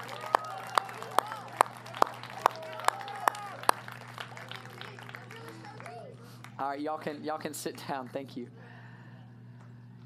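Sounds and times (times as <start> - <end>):
audience applause: 0.0 - 6.6
speech: 6.6 - 8.6.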